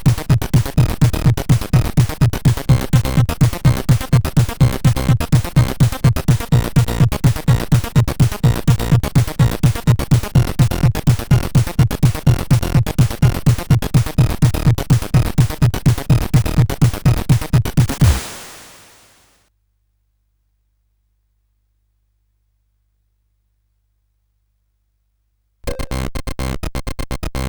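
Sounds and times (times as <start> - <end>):
CSG8580 chip music: 0.0 - 19.2.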